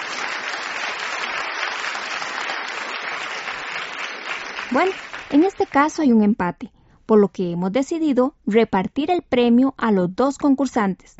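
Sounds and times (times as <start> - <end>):
audience applause for contestants: 0.0 - 5.9
speech: 4.7 - 11.1.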